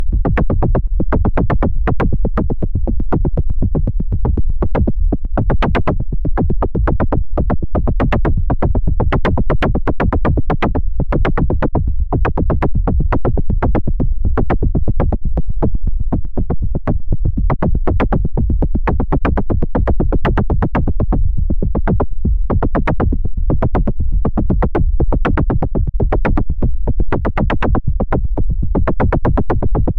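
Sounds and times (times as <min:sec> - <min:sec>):
drum: 0:00.0 - 0:29.9.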